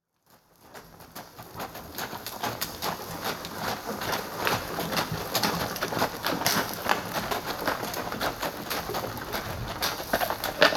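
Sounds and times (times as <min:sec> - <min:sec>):
horse hoofbeats: 0:00.4 - 0:10.7.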